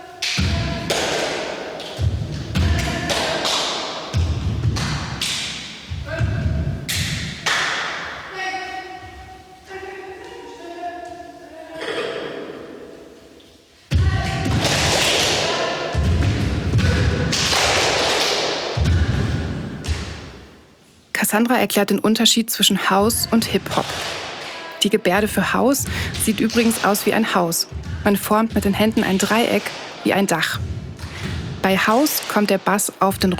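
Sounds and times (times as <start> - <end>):
rhythmic hand clapping: 0.0 - 8.3, 13.9 - 20.5, 22.8 - 33.3
foot stamping: 0.4 - 8.3, 13.9 - 20.6, 23.0 - 33.3
speech: 21.3 - 24.1, 24.8 - 30.7, 31.6 - 33.3.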